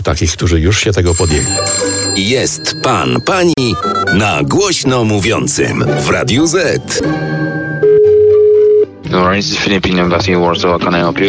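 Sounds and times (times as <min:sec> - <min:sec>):
speech: 0:00.0 - 0:07.6, 0:09.1 - 0:11.2
telephone dialing tones calling the Philippine embassy: 0:01.1 - 0:04.3, 0:07.0 - 0:08.9
telephone ring tone calling the Philippine embassy: 0:01.1 - 0:05.2, 0:07.0 - 0:08.9.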